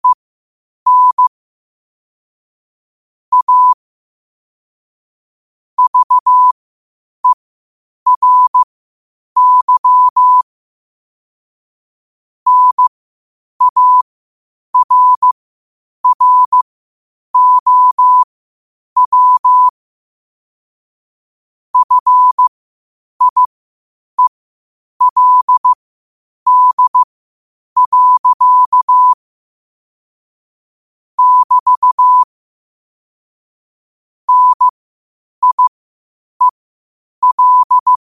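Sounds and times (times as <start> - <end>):
morse code at 5 wpm: 0.9 - 1.3, 3.3 - 3.8, 5.8 - 6.5, 8.1 - 8.7, 9.4 - 10.4, 12.5 - 12.9, 13.6 - 14.0, 14.8 - 15.4, 16.0 - 16.6, 17.4 - 18.3, 19.0 - 19.7, 21.8 - 22.5, 23.2 - 23.5, 25.0 - 25.8, 26.5 - 27.1, 27.8 - 29.2, 31.2 - 32.3, 34.3 - 34.8, 35.4 - 35.8, 37.2 - 38.0.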